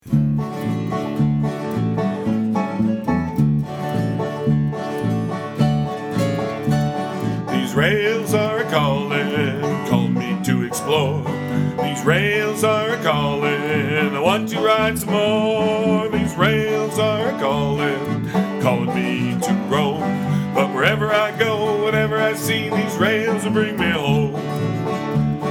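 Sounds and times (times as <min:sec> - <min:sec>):
train song: 0:00.1 - 0:25.4.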